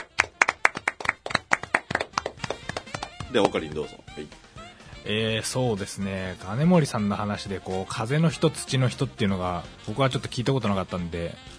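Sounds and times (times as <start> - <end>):
people clapping hands: 0.0 - 3.9
speech: 3.3 - 4.4, 5.0 - 11.5.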